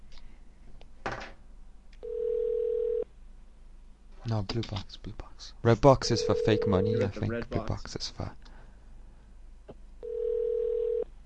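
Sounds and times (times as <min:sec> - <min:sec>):
telephone dial tone from a dial tone generator: 0:02.0 - 0:03.0, 0:10.0 - 0:11.1
speech: 0:04.3 - 0:08.4.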